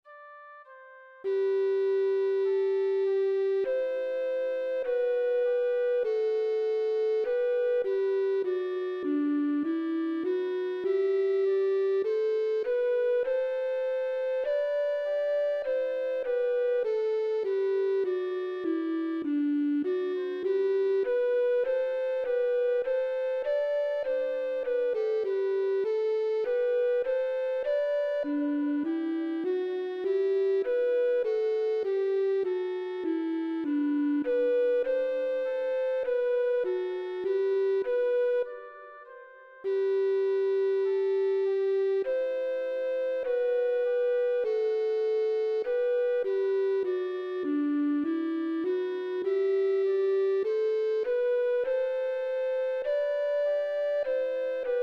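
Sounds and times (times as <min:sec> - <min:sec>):
flute: 0:00.0 - 0:54.8.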